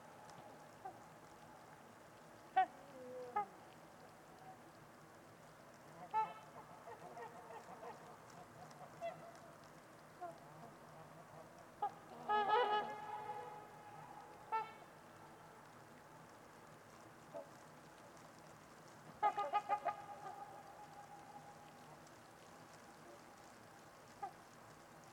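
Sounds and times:
faint background hiss: 0:00.0 - 0:25.1
trumpeter swans giving brassy trumpeting honks: 0:11.8 - 0:14.9, 0:19.2 - 0:22.1.

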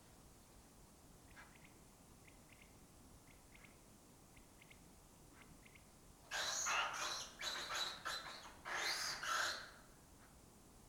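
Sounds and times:
lesser kestrel rasping calls: 0:06.3 - 0:09.8.

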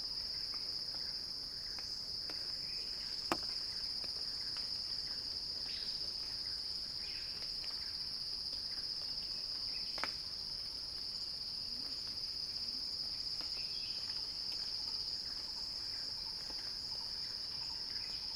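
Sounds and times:
cicada chorus buzzing: 0:00.0 - 0:11.5, 0:12.2 - 0:18.3.

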